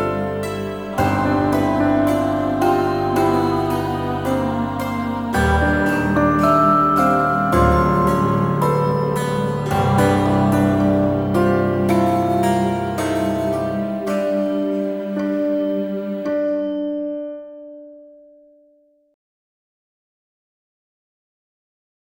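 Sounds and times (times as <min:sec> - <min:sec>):
music box: 0:00.0 - 0:17.1.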